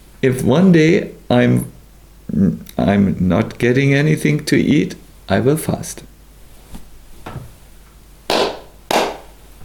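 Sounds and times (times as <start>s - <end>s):
speech: 0.2s - 6.1s
hand claps: 8.3s - 9.4s.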